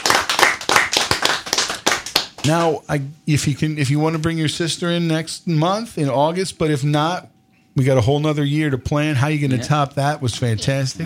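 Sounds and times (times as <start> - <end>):
round of applause: 0.0 - 2.8
speech: 2.4 - 11.0.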